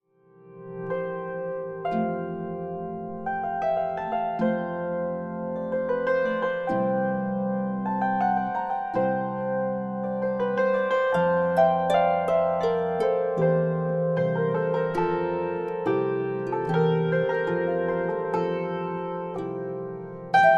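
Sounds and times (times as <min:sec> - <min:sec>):
harp playing a minuet: 0:00.3 - 0:20.5
hammered dulcimer playing a minuet: 0:00.9 - 0:20.5.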